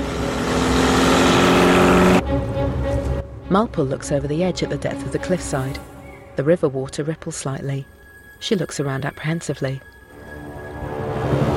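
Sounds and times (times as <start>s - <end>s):
convertible car engine roaring speeding along road: 0.0s - 3.4s
speech: 3.5s - 10.0s.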